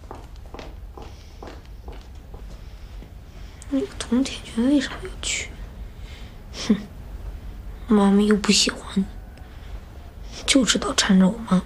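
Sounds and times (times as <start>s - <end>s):
footsteps of a mother leaving home: 0.0s - 4.2s
speech: 3.7s - 5.6s, 6.7s - 6.9s, 7.9s - 9.2s, 10.5s - 11.6s.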